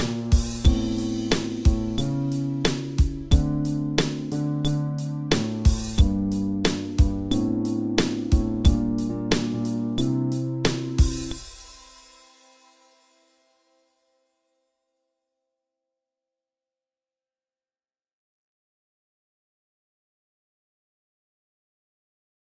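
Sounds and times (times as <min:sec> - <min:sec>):
fretless bass groove: 0:00.0 - 0:11.4.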